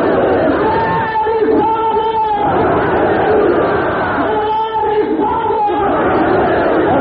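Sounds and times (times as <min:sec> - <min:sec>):
large crowd chanting a slogan response in unison: 0:00.0 - 0:06.9.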